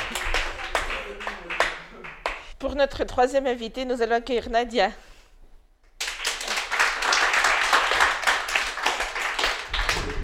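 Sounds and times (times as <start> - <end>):
audience clapping: 0.0 - 2.5, 5.9 - 10.2
speech: 2.6 - 5.1.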